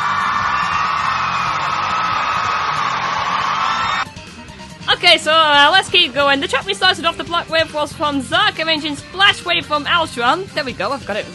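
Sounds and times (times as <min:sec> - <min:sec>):
canned applause effect with crowd cheering: 0:00.0 - 0:04.1
speech: 0:05.1 - 0:11.3.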